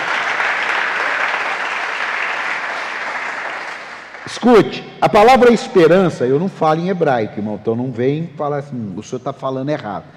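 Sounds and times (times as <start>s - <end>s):
audience applause: 0.0s - 4.3s
speech: 4.4s - 10.1s.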